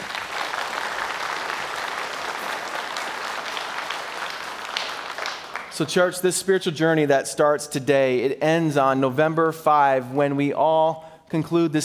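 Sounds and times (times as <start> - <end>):
audience applause: 0.0 - 6.0
speech: 5.8 - 11.8.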